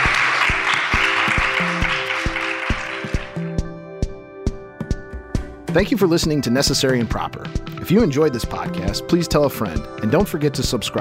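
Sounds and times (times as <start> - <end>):
audience applause for panelists: 0.0 - 3.6
music with steady beat and sustained tones: 0.0 - 10.9
speech: 5.8 - 10.9.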